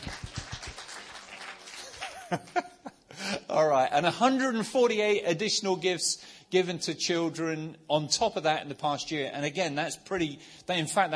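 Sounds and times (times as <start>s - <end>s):
audience applause: 0.0s - 2.5s
laughter: 1.7s - 3.2s
speech: 2.3s - 2.6s, 3.6s - 11.1s.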